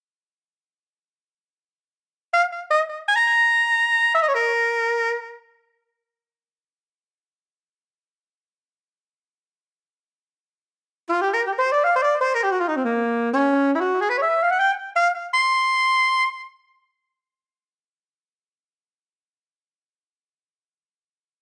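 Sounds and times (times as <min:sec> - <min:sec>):
saxophone: 0:02.3 - 0:05.8, 0:11.1 - 0:16.7.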